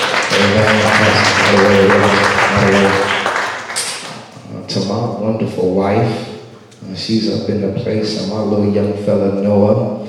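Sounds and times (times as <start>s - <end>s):
audience applause: 0.0s - 4.3s
speech: 0.4s - 3.0s, 4.7s - 10.0s.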